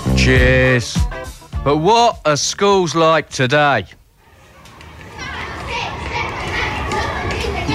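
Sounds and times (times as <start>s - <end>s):
speech: 0.3s - 1.1s, 1.6s - 4.0s
children playing in a school playground: 4.2s - 7.7s.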